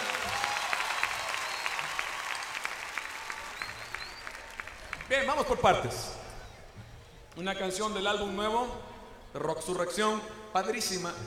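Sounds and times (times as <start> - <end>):
loud audience applause: 0.0 - 6.3
speech: 5.1 - 6.2, 7.4 - 11.2.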